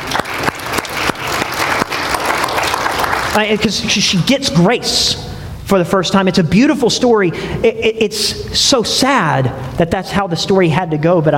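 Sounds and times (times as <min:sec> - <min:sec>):
audience clapping: 0:00.0 - 0:04.0
speech: 0:03.4 - 0:11.3.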